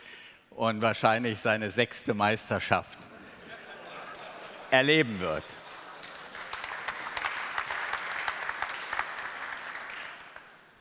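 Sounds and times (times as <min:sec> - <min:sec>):
speech: 0:00.6 - 0:03.1, 0:04.7 - 0:05.6
laughter: 0:03.0 - 0:06.6
audience applause: 0:05.2 - 0:10.7.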